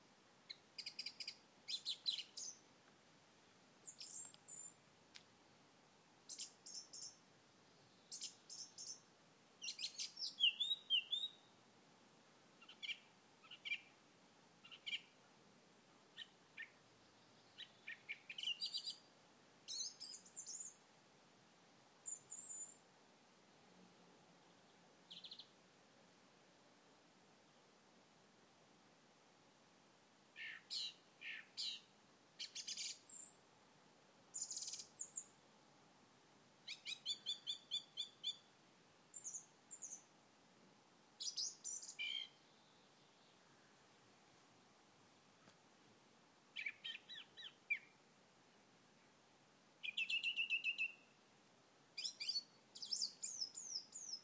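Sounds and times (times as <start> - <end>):
birdsong on a quiet evening: 0.5 - 2.6, 3.8 - 4.8, 6.3 - 7.2, 7.8 - 11.6, 12.6 - 14.0, 14.6 - 15.2, 16.2 - 19.1, 19.7 - 20.8, 22.0 - 22.8, 24.4 - 25.6, 30.4 - 33.4, 34.3 - 35.3, 36.7 - 38.5, 39.1 - 40.1, 41.2 - 43.7, 46.6 - 48.0, 49.8 - 51.2, 52.0 - 54.2.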